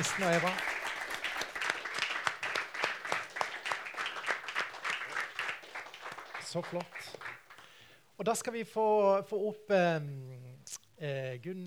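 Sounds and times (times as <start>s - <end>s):
speech: 0.0s - 0.8s, 6.5s - 7.2s, 8.2s - 11.6s
audience applauding: 0.0s - 7.8s.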